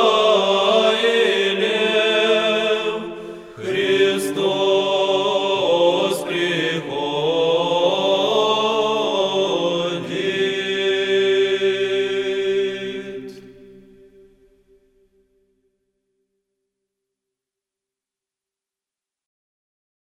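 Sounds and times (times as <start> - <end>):
Kievan chant in tone six: 0.0 - 14.3.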